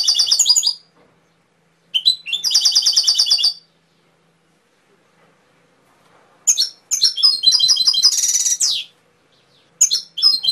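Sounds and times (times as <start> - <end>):
canary singing trilled phrases: 0.0 - 0.9, 1.9 - 3.7, 6.5 - 10.5.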